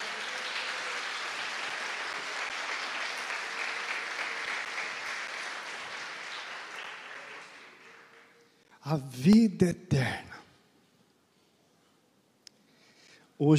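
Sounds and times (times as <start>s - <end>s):
audience applauding: 0.0s - 8.6s
speech: 8.8s - 10.3s.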